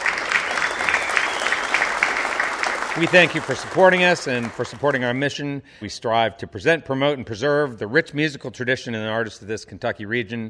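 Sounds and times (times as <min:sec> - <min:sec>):
studio audience applauding at a live music show: 0:00.0 - 0:05.3
speech: 0:03.0 - 0:10.4.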